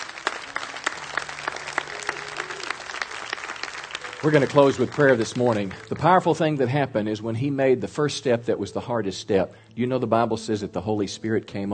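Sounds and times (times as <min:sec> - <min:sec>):
audience applause: 0:00.0 - 0:06.4
speech: 0:04.2 - 0:11.7.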